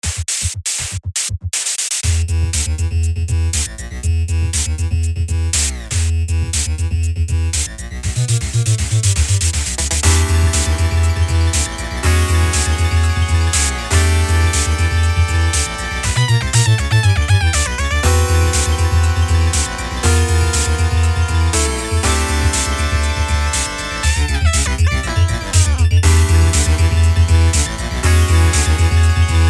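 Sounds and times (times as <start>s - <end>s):
game boss music: 2.0s - 29.4s.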